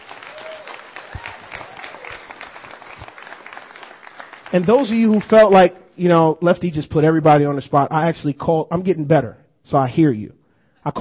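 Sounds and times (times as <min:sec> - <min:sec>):
people clapping: 0:00.0 - 0:05.7
speech: 0:04.5 - 0:10.9.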